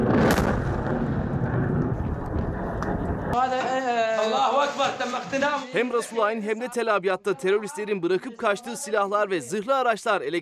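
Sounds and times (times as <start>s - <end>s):
jet airstrike explosion at tunnel entrance: 0.0s - 3.4s
speech: 3.4s - 10.4s.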